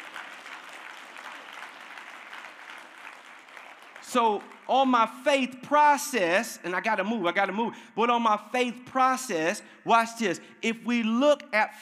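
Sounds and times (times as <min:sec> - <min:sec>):
audience clapping hands: 0:00.0 - 0:05.2
speech: 0:04.1 - 0:11.7.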